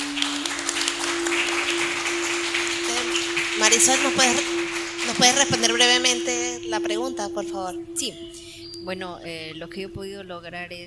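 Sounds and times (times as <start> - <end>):
audience applause: 0.0 - 7.5
speech: 3.6 - 10.8.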